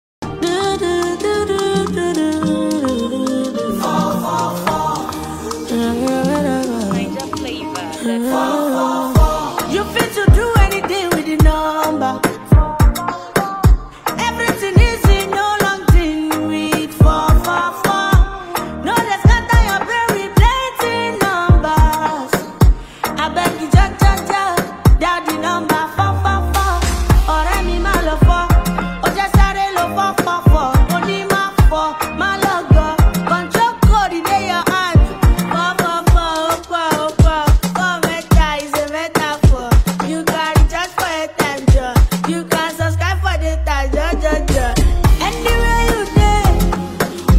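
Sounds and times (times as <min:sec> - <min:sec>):
advert song: 0:00.2 - 0:47.3.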